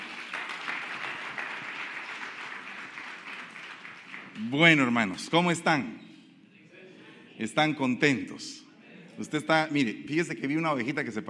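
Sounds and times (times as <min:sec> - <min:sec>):
audience applauding: 0:00.0 - 0:04.4
speech: 0:04.4 - 0:06.0, 0:07.4 - 0:08.6, 0:09.2 - 0:11.2.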